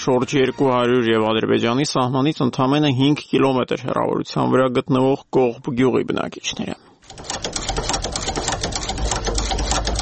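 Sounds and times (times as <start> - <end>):
speech: 0.0 - 7.4
village shoemaker's sewing machine running in Koghb, Tavush region, Armenia: 7.0 - 10.0.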